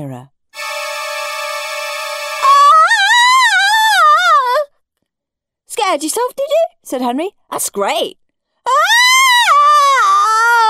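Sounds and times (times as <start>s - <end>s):
speech: 0.0s - 0.4s, 5.9s - 8.8s
person howling: 2.4s - 4.6s, 8.7s - 10.6s.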